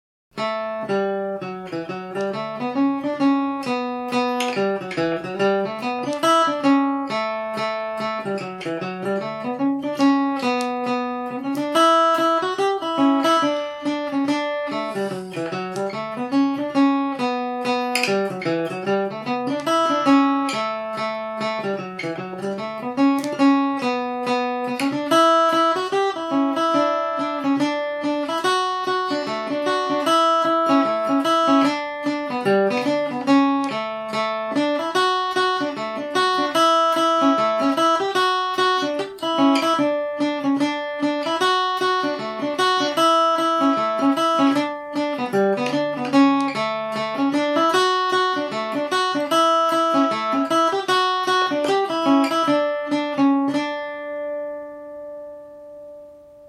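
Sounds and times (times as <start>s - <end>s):
mandolin in D major: 0.3s - 56.4s.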